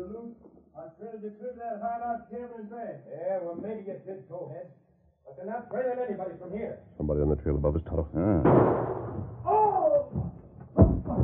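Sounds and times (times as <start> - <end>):
speech: 1.2 - 11.2
gunshot: 8.4 - 9.6.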